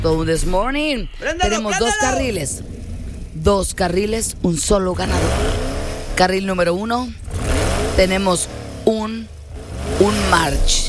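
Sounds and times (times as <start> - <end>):
speech: 0.0 - 2.7, 3.4 - 7.2, 8.0 - 9.4, 10.0 - 10.8
laughter: 1.2 - 2.4
small red Nissan March engine revving: 1.7 - 10.8.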